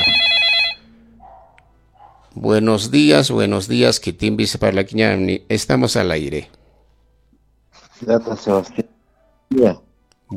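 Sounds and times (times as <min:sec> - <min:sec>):
telephone ringing with an incoming call to a radio show: 0:00.0 - 0:01.0
speech: 0:02.4 - 0:06.6, 0:08.0 - 0:08.9, 0:09.5 - 0:10.3.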